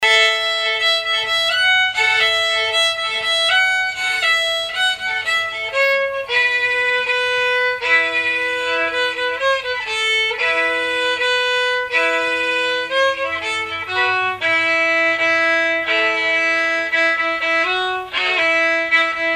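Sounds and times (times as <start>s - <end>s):
slow fiddle tune: 0.0s - 19.3s.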